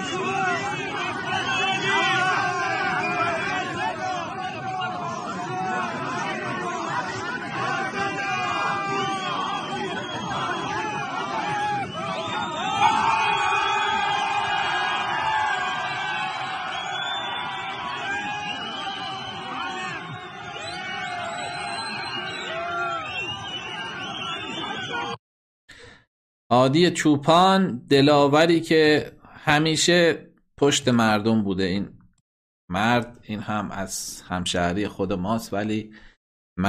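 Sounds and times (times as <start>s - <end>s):
large crowd babble around bodybuilder Hadi Choopan: 0.0s - 25.2s
shouts, whoops and cheers from the crowd: 0.0s - 25.2s
speech: 26.6s - 32.0s, 32.7s - 36.6s.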